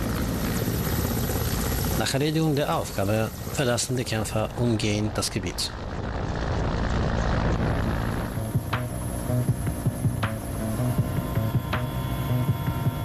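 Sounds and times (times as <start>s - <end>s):
helicopter flying: 0.0s - 13.0s
speech: 2.0s - 6.1s.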